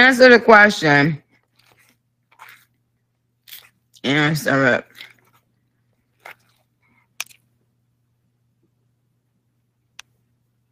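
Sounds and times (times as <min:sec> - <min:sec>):
speech: 0:00.1 - 0:01.2, 0:04.0 - 0:04.9
person smacking and crunching while chewing food: 0:01.4 - 0:02.8, 0:03.4 - 0:04.0, 0:04.8 - 0:07.4.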